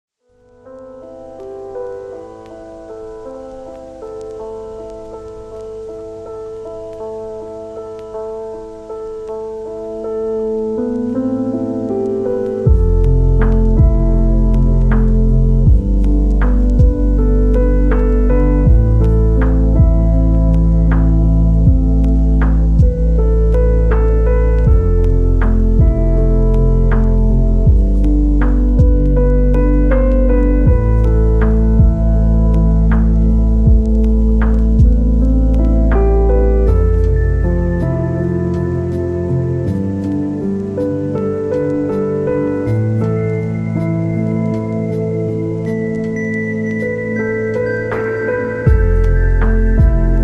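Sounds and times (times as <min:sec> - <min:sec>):
lofi music: 0:00.3 - 0:50.2.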